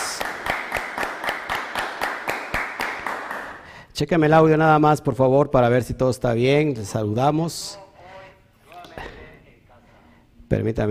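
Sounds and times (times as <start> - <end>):
noisy applause: 0.0 - 3.8
rhythmic crowd clapping: 0.0 - 3.8
speech: 4.0 - 7.8, 10.5 - 10.9.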